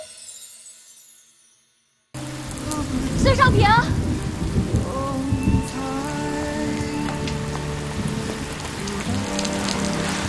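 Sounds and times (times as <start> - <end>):
heavy rain: 2.2 - 10.2.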